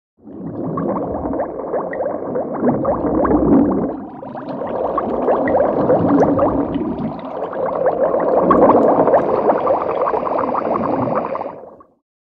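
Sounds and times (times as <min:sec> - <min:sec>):
massed bubbles echoing: 0:00.2 - 0:12.0.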